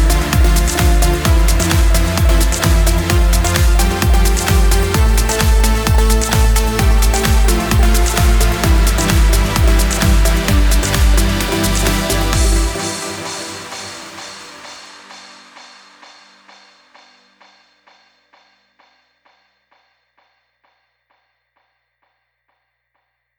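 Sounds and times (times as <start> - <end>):
progressive trance music at 130 BPM in D minor: 0.0 - 17.2.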